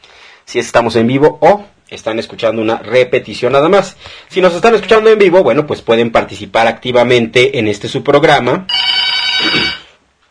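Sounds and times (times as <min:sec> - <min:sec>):
speech: 0:00.5 - 0:09.8
telephone ringing: 0:08.7 - 0:10.0.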